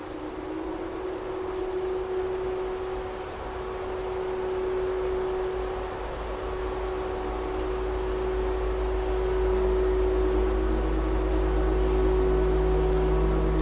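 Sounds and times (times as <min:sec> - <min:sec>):
tornado siren: 0:00.0 - 0:13.6.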